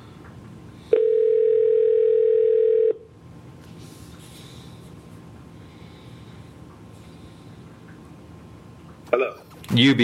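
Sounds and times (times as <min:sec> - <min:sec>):
telephone line tone: 0:00.9 - 0:03.1.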